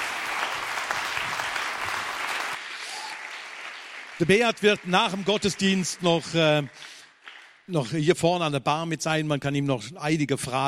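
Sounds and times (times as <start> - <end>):
audience applause: 0.0 - 7.7
speech: 4.2 - 7.0, 7.7 - 10.6.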